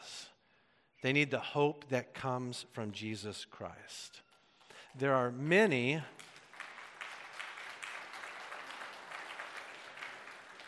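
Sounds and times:
speech: 1.0s - 4.3s, 4.9s - 6.3s
congregation clapping during a church sermon: 4.3s - 10.6s.

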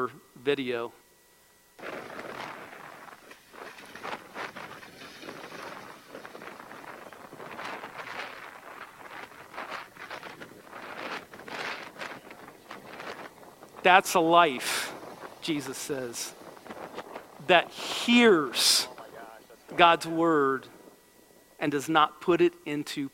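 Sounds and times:
speech: 0.0s - 1.0s, 13.8s - 16.4s, 17.5s - 18.9s, 19.8s - 20.7s, 21.6s - 23.1s
strong wind driving rain: 1.8s - 21.6s.

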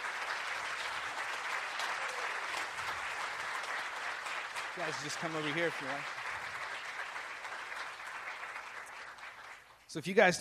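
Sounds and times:
audience applause: 0.0s - 9.8s
speech: 4.8s - 6.2s, 10.0s - 10.3s.

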